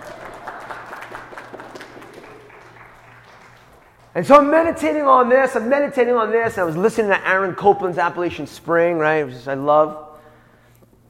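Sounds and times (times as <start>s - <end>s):
audience applause: 0.0s - 4.2s
speech: 4.2s - 10.0s.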